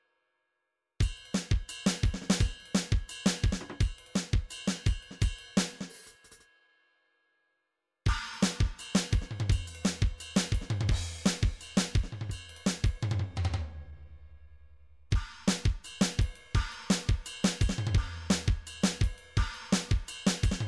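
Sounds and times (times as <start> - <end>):
MIDI drum cymbal: 1.0 - 6.1, 8.1 - 13.8, 15.1 - 20.6.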